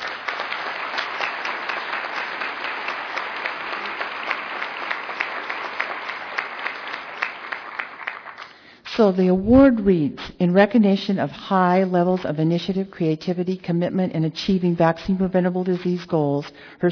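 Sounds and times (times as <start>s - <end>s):
audience applauding: 0.0s - 8.6s
speech: 9.0s - 16.9s.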